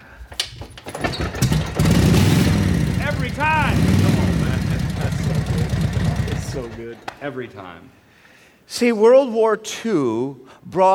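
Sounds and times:
restored World War II-era motorcycle engine starting: 0.4 - 7.8
speech: 7.2 - 8.0, 8.7 - 10.9.

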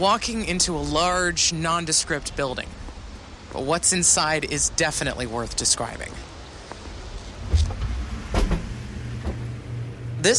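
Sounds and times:
speech: 0.0 - 2.8, 3.5 - 6.3
environmental growth chamber humming: 7.0 - 10.3.

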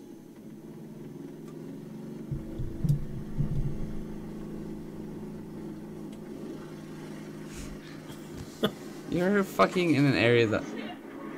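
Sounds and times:
small ATV engine revving and idling: 2.3 - 8.1
speech: 9.2 - 10.8.

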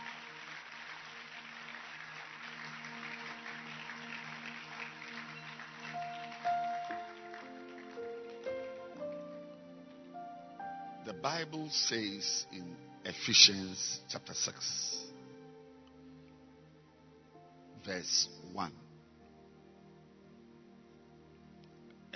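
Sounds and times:
audience clapping: 0.0 - 10.2
speech: 11.1 - 15.0, 17.9 - 18.8.

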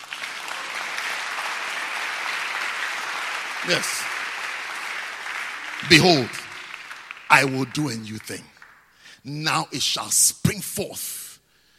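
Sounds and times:
audience applause: 0.0 - 9.0
speech: 3.6 - 4.2, 5.9 - 6.4, 7.3 - 8.6, 9.2 - 11.2.

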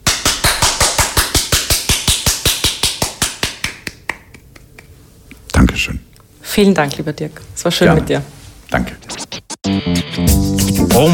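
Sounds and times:
applause, hand clapping: 0.0 - 5.0
speech: 5.6 - 9.0, 9.7 - 11.1.

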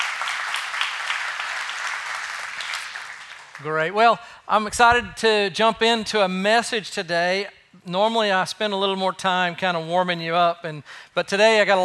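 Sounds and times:
audience clapping for guests: 0.0 - 3.9
speech: 3.6 - 11.8.

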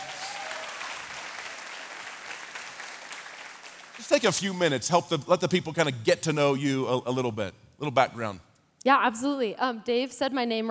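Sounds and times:
audience applauding: 0.0 - 5.1
speech: 4.0 - 10.6.

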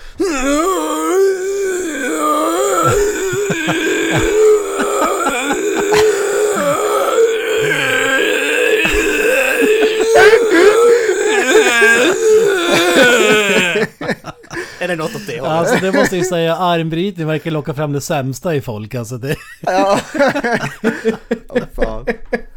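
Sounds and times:
man imitating straining groans: 0.2 - 14.0, 15.0 - 16.3
laughter: 2.8 - 7.9, 8.7 - 16.4, 19.3 - 22.5
speech: 14.9 - 21.6.

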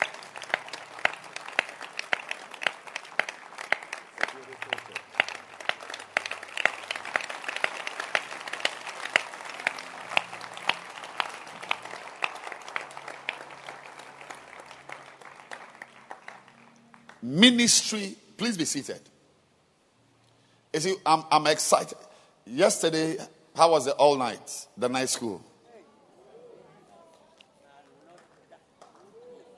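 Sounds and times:
audience hands clapping: 0.0 - 17.6, 27.4 - 29.2
speech: 17.3 - 19.1, 20.8 - 25.5.

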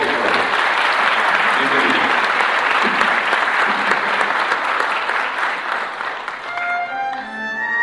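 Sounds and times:
audience applause: 0.0 - 7.7.

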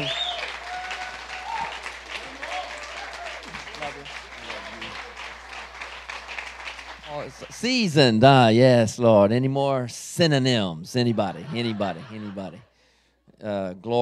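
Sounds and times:
audience clapping hands: 0.0 - 8.3
speech: 7.2 - 12.7, 13.4 - 14.0
laughter: 10.9 - 12.7.

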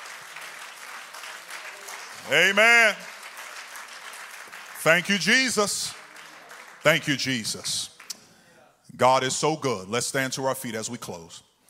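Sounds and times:
audience clapping hands: 0.0 - 8.3
speech: 2.3 - 3.1, 4.8 - 6.0, 6.8 - 7.9, 8.9 - 11.5.

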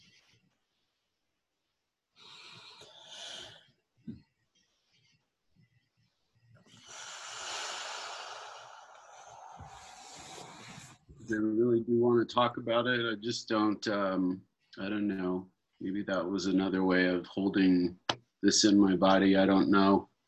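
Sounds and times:
group of people taking deep breaths during a meditation session: 6.7 - 11.2
speech: 11.3 - 20.1.

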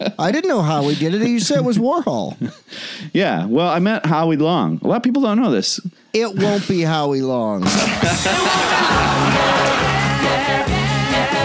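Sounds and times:
laughter: 0.0 - 2.6, 6.4 - 6.8, 7.6 - 10.6
speech: 0.0 - 10.7
live concert crowd roaring: 7.6 - 11.4.

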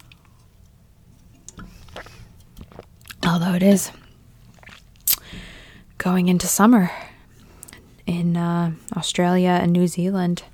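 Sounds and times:
sipping watermelon sparkling water: 1.2 - 5.8
speech: 3.4 - 4.0, 6.0 - 7.0, 8.4 - 10.5.

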